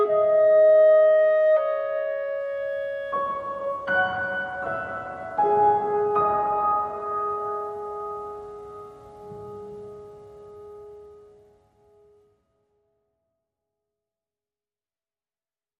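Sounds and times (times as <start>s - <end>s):
melody: 0.0s - 11.6s.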